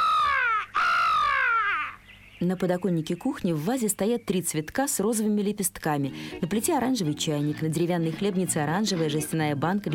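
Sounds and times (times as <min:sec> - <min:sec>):
crow cawing in a nest: 0:00.0 - 0:02.0
speech: 0:02.4 - 0:09.9.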